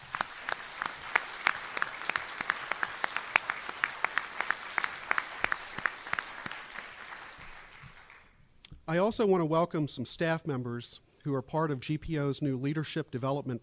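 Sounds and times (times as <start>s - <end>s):
audience round of applause: 0.0s - 8.3s
speech: 8.9s - 13.6s.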